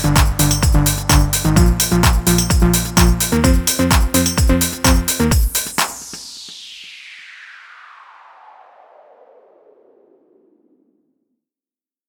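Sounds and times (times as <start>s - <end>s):
phonk house music: 0.0s - 7.0s.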